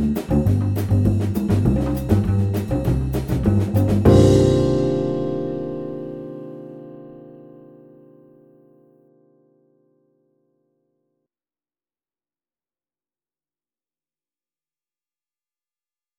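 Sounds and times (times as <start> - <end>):
vibraphone samba play-along: 0.0 - 7.1.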